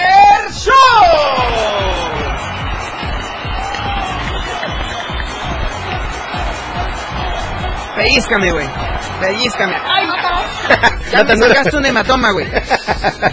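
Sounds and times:
audience cheering: 0.0 - 12.0
audience applause: 1.3 - 11.6
speech: 8.3 - 9.9, 10.7 - 13.3
laughter: 9.1 - 13.3.

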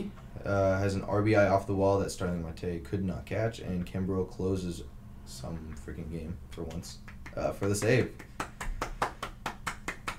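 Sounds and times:
speech: 0.0 - 8.4
hand claps: 6.6 - 10.1.

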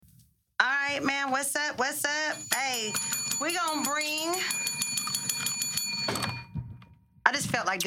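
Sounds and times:
speech: 0.9 - 4.8, 7.3 - 7.8
bright metallic bell ringing rapidly to open an episode: 2.3 - 6.5.

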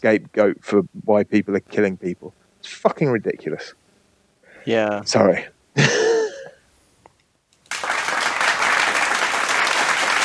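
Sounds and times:
speech: 0.0 - 3.8, 4.6 - 6.1
crowd applauding: 7.6 - 10.2.

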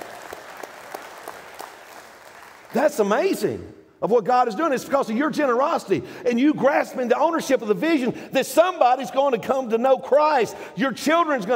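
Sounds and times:
audience clapping: 0.0 - 3.1
speech: 2.7 - 11.5.

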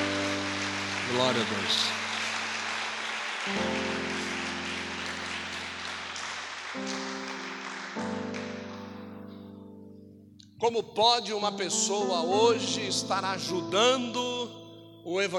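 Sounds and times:
audience applause: 0.0 - 9.0
sustained low keyboard chords: 0.0 - 15.2
speech: 1.1 - 2.0, 3.4 - 3.8, 10.6 - 15.3.

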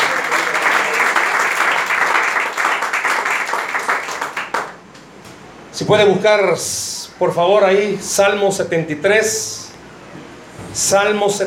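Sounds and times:
crowd applause: 0.0 - 4.8
speech: 5.8 - 9.6, 10.8 - 11.4.

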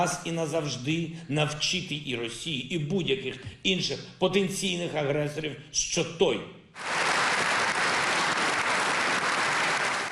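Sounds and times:
speech: 0.0 - 7.0
parliament applauding standing: 6.8 - 10.0.

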